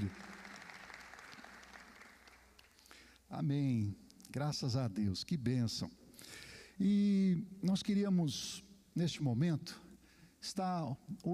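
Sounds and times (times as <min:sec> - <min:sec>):
speech: 0:00.0 - 0:00.3, 0:03.3 - 0:06.0, 0:06.8 - 0:09.8, 0:10.4 - 0:11.3
audience applause: 0:00.0 - 0:02.8.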